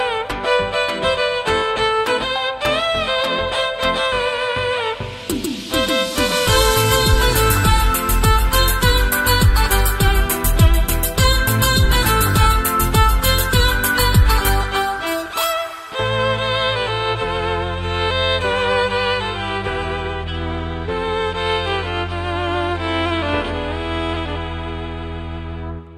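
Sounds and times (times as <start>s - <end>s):
violin: 0.0s - 25.9s.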